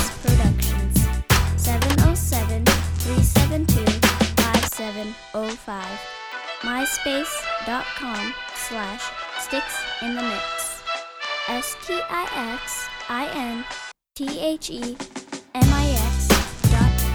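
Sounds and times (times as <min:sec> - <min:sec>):
solid brass beat: 0:00.0 - 0:04.7, 0:06.2 - 0:12.9, 0:15.6 - 0:17.1.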